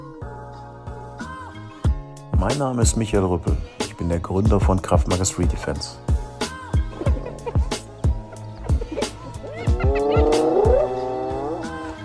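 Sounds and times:
speech: 2.4s - 6.0s
laughter: 6.8s - 11.2s
hyena screaming: 9.4s - 12.0s.

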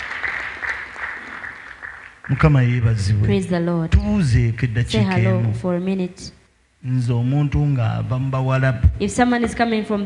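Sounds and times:
audience clapping: 0.0s - 3.0s
speech: 2.3s - 10.0s.

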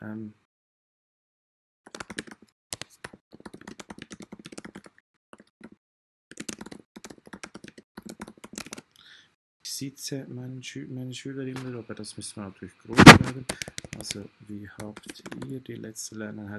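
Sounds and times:
typing on a computer keyboard: 1.9s - 8.9s, 13.5s - 14.2s, 14.8s - 15.6s
speech: 9.8s - 16.5s.

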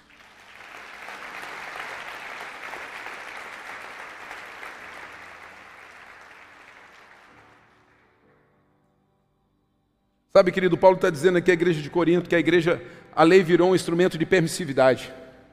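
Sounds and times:
audience applauding: 0.0s - 8.2s
speech: 10.4s - 15.2s.

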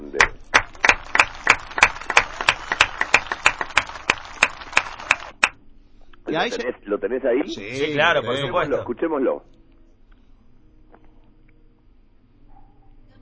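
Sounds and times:
steady rhythmic clapping: 0.0s - 5.6s
speech: 6.3s - 9.6s.

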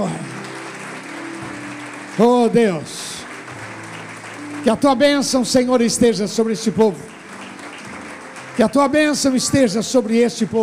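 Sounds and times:
audience applauding: 0.0s - 10.6s
speech: 2.2s - 3.1s, 4.6s - 7.2s, 8.6s - 10.6s.

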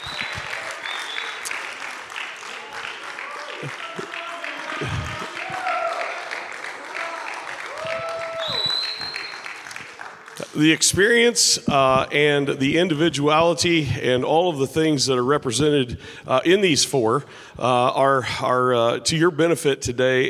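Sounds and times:
audience applauding panel: 0.0s - 10.8s
speech: 10.6s - 20.2s.

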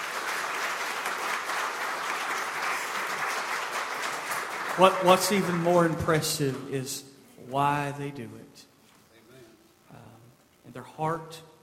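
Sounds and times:
audience applause: 0.0s - 6.7s
speech: 4.8s - 8.7s, 10.8s - 11.5s.

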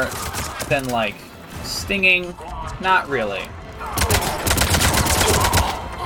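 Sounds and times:
rapid gunfire in a video game: 0.0s - 1.1s, 3.8s - 5.9s
speech: 0.0s - 4.3s.

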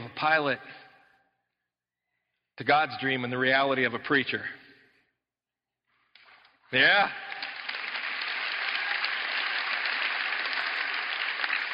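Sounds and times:
speech: 0.2s - 0.8s, 2.6s - 4.6s, 6.7s - 7.4s
audience applause: 7.0s - 11.7s.

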